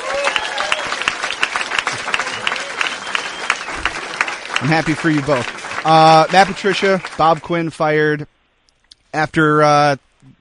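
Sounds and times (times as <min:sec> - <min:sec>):
applause: 0:00.0 - 0:07.9
speech: 0:04.6 - 0:08.4, 0:09.2 - 0:10.3.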